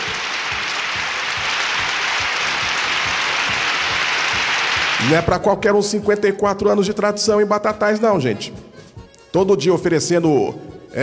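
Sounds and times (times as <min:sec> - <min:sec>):
crowd applause: 0:00.0 - 0:05.2
speech: 0:05.0 - 0:08.7, 0:09.3 - 0:11.0.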